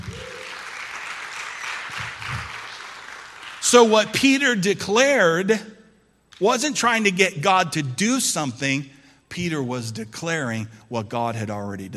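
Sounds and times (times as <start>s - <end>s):
scattered whoops and voices: 0.0s - 0.6s
crowd clapping: 0.0s - 4.3s
speech: 3.7s - 5.7s, 6.4s - 11.9s.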